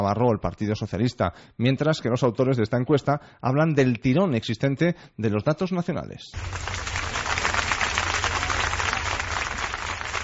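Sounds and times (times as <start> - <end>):
speech: 0.0 - 7.0
crowd applause at a mass farewell in Seville: 6.4 - 10.2.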